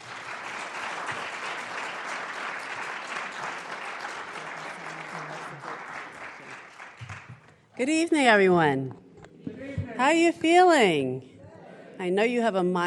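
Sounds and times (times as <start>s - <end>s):
audience applauding a speaker at a Graduate School of Public Health event: 0.0s - 7.6s
speech: 7.8s - 9.0s, 10.0s - 11.3s, 12.0s - 12.8s.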